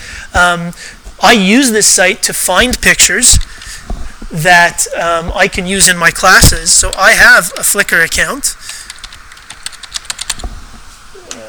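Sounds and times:
speech: 0:00.4 - 0:08.8
person typing an email address on a computer keyboard: 0:08.7 - 0:10.4.

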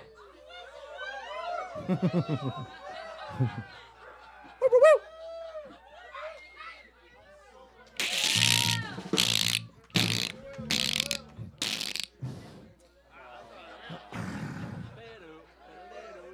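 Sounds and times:
laughter: 0:00.4 - 0:05.1, 0:08.1 - 0:12.1, 0:13.2 - 0:14.3
speech: 0:01.9 - 0:03.9
people chattering: 0:07.9 - 0:12.1
person imitating a cicada with their voice: 0:08.0 - 0:12.1.

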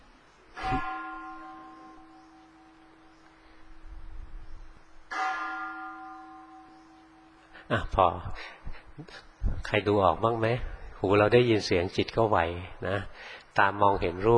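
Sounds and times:
temple bell being struck: 0:00.6 - 0:03.3, 0:05.1 - 0:07.5
speech: 0:07.7 - 0:14.3.

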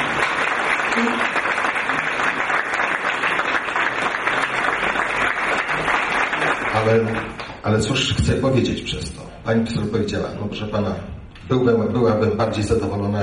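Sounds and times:
audience applause: 0:00.0 - 0:07.6
speech: 0:01.0 - 0:01.3, 0:06.9 - 0:13.2.

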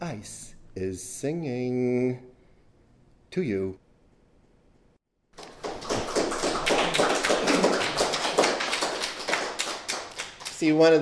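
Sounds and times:
speech: 0:00.2 - 0:02.3, 0:03.3 - 0:03.8, 0:10.6 - 0:11.0
audience applause: 0:05.4 - 0:10.8.

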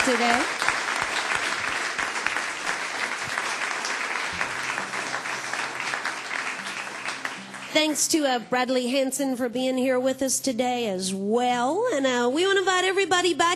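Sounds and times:
audience round of applause: 0:00.0 - 0:08.1
speech: 0:00.1 - 0:00.6, 0:07.7 - 0:13.5.

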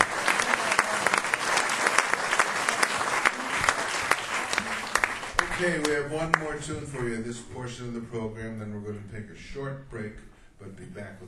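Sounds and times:
audience applause for performers at a music show: 0:00.0 - 0:06.5
speech: 0:05.6 - 0:11.2.

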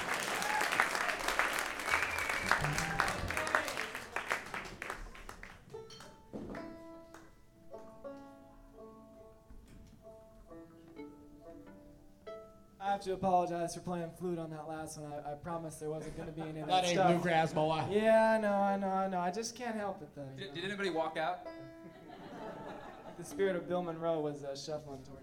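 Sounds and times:
crowd applause: 0:00.0 - 0:05.8
laughter: 0:02.1 - 0:03.8, 0:21.7 - 0:23.7
speech: 0:13.0 - 0:21.8, 0:23.2 - 0:25.2.

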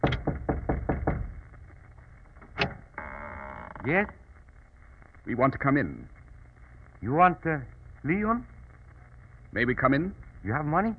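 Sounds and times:
knocking on a wooden door: 0:00.0 - 0:01.4
speech: 0:03.8 - 0:04.2, 0:05.3 - 0:06.2, 0:07.0 - 0:08.5, 0:09.5 - 0:10.9.

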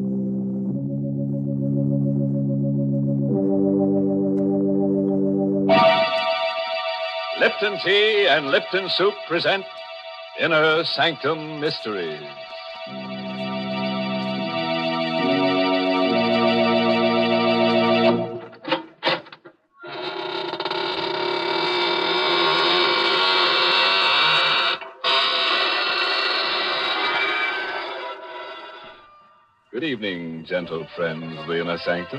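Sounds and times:
organ-like chords: 0:00.0 - 0:18.7, 0:29.8 - 0:32.1
door creaking: 0:05.7 - 0:13.0, 0:18.4 - 0:29.6
speech: 0:07.4 - 0:09.8, 0:10.4 - 0:13.0, 0:29.8 - 0:32.1.

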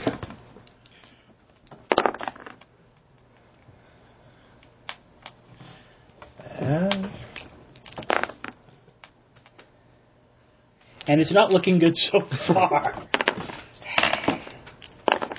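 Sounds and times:
dice rattling while searched for and rolled: 0:01.9 - 0:02.7, 0:07.8 - 0:08.6, 0:13.1 - 0:15.3
speech: 0:11.1 - 0:13.1.

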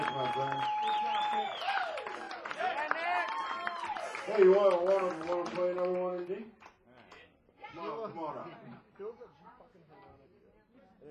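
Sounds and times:
crowd whoops and voices: 0:00.0 - 0:04.4
audience clapping: 0:00.0 - 0:07.3
speech: 0:04.3 - 0:06.6, 0:07.8 - 0:09.3.

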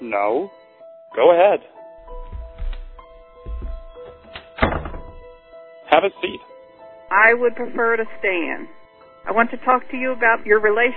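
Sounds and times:
speech: 0:00.1 - 0:01.8, 0:05.9 - 0:06.5, 0:07.1 - 0:10.9
door being shut: 0:02.1 - 0:05.4.

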